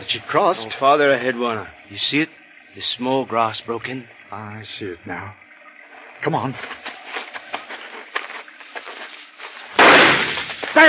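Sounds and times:
speech: 0:00.1 - 0:05.4, 0:06.2 - 0:06.8
soft patter: 0:06.5 - 0:09.8
faint rustles on a hunting trail: 0:06.6 - 0:10.8
gunshot in a radio drama: 0:09.8 - 0:10.6.

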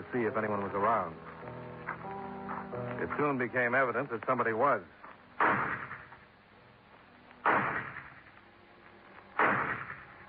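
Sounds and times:
speech: 0:00.1 - 0:01.3, 0:02.7 - 0:05.0
gunshots from a low barn-like building: 0:05.4 - 0:06.2, 0:07.4 - 0:08.3, 0:09.4 - 0:10.2.

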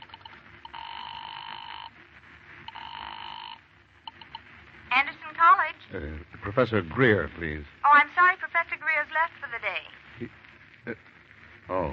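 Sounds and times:
telephone ringing: 0:00.0 - 0:02.0, 0:02.6 - 0:04.4
speech: 0:05.9 - 0:11.1.

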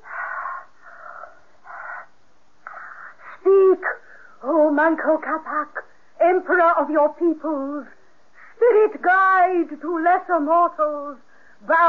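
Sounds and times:
heavy breathing: 0:00.0 - 0:03.4
speech: 0:04.8 - 0:08.0, 0:08.6 - 0:11.8.

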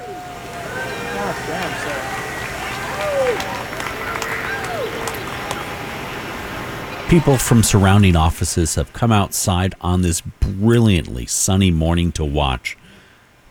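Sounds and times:
outdoor crowd cheering and whooping: 0:00.0 - 0:08.4
laughter: 0:00.0 - 0:12.9
outdoor crowd applause: 0:00.0 - 0:13.5
speech: 0:07.1 - 0:12.8.

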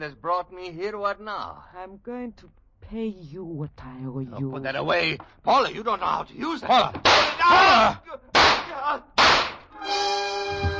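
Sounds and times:
speech: 0:00.0 - 0:09.1
pistol shots: 0:07.0 - 0:07.4, 0:08.4 - 0:09.7.

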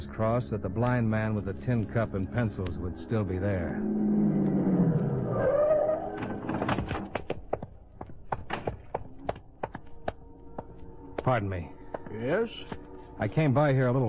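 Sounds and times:
speech: 0:00.2 - 0:05.7, 0:11.3 - 0:14.0
car engine revving: 0:01.9 - 0:06.9
sharp clicks and thunks: 0:06.2 - 0:10.2.

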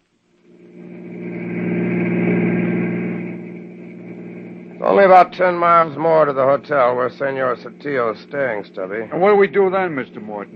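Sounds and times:
car engine starting and running: 0:00.0 - 0:10.5
speech: 0:04.9 - 0:10.5.

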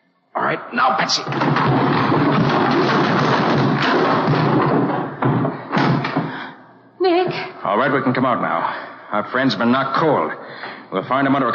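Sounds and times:
speech: 0:00.5 - 0:03.1, 0:07.3 - 0:11.5
heavy barrels toppling and rolling: 0:01.0 - 0:06.4
hollow thuds of barrels: 0:01.1 - 0:06.6.

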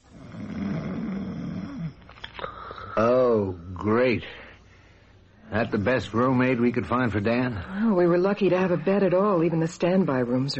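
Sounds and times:
man snoring loudly: 0:00.0 - 0:02.0
speech: 0:03.0 - 0:04.4, 0:05.5 - 0:10.5.

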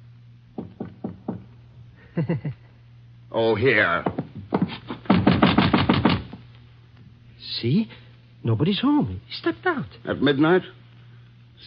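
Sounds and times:
knocking on the concierge's door: 0:00.5 - 0:01.6, 0:04.0 - 0:06.4
speech: 0:02.2 - 0:02.6, 0:03.3 - 0:04.2, 0:07.5 - 0:10.8.

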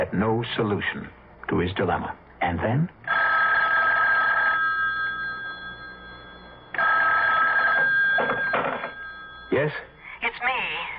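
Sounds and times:
speech: 0:00.0 - 0:03.0, 0:09.7 - 0:09.9
telephone ringing with a warbling tone: 0:03.1 - 0:10.9.

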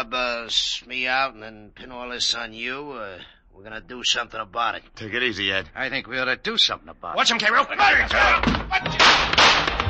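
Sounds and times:
speech: 0:00.0 - 0:09.8
gunshots as a sound effect in a 1949 radio detective drama: 0:08.9 - 0:09.8.

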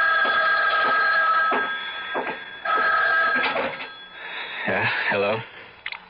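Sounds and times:
telephone ringing: 0:00.0 - 0:05.4
speech: 0:04.8 - 0:05.5.

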